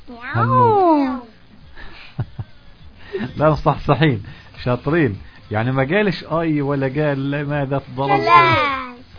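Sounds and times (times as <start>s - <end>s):
speech: 0.1s - 0.6s, 3.4s - 9.1s
voices imitating a cat's meow: 0.2s - 1.4s.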